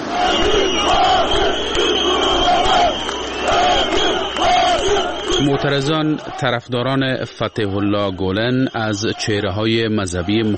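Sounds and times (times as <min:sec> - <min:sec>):
large crowd of angry protesters shouting and chanting: 0:00.0 - 0:10.5
speech: 0:05.4 - 0:10.5.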